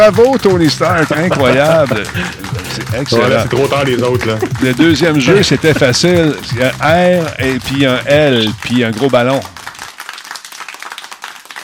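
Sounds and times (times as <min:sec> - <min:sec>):
applause: 0:00.0 - 0:11.6
speech: 0:00.1 - 0:09.6
laughter: 0:00.5 - 0:09.1.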